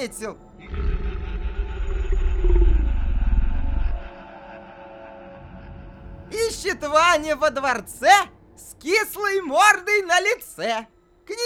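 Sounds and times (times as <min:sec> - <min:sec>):
speech: 0:00.0 - 0:00.9, 0:06.6 - 0:11.4
dragon-like monster roar: 0:00.6 - 0:04.1.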